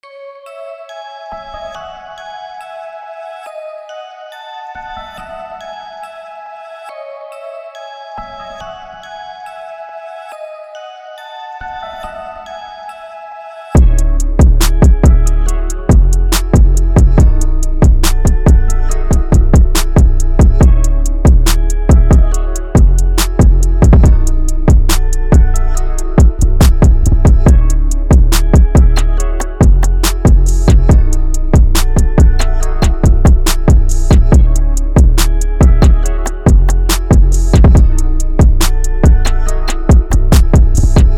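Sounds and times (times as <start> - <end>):
music beat: 13.8 - 41.1.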